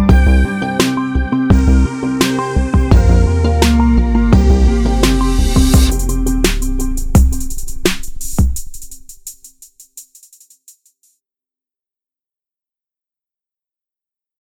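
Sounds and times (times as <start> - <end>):
retro music ident: 0.1 - 9.4.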